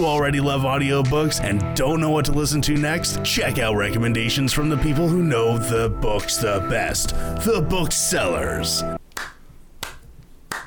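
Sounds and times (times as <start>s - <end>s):
speech: 0.0s - 9.0s
slow sharp hand claps: 9.0s - 10.6s.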